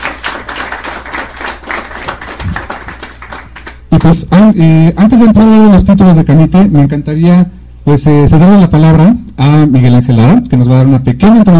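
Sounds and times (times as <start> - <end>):
audience applause: 0.0 - 3.9
speech: 3.9 - 11.5.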